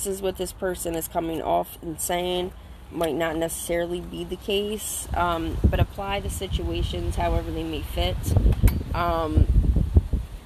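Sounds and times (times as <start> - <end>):
speech: 0.0 - 9.6
wind blowing: 3.2 - 10.4.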